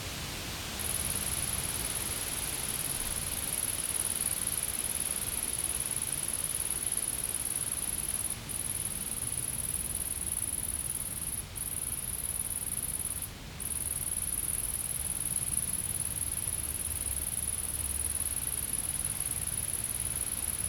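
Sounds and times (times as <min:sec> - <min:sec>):
insects buzzing trill: 0:00.8 - 0:20.6.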